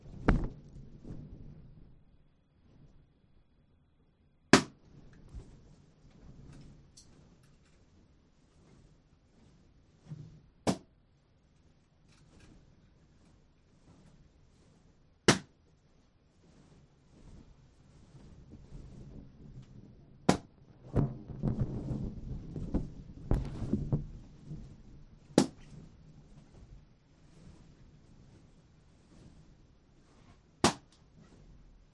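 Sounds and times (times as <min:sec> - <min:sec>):
balloons popped with a needle taped to a stick: 0:00.2 - 0:00.6, 0:20.3 - 0:24.1, 0:25.3 - 0:25.6, 0:30.6 - 0:30.9.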